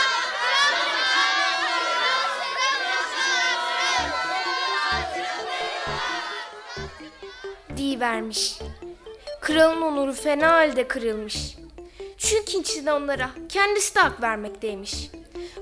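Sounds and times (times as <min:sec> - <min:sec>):
crowd of people shouting: 0:00.0 - 0:07.7
rhythmic low thumps: 0:04.0 - 0:15.6
speech: 0:08.0 - 0:08.7, 0:09.5 - 0:11.6, 0:12.2 - 0:15.2.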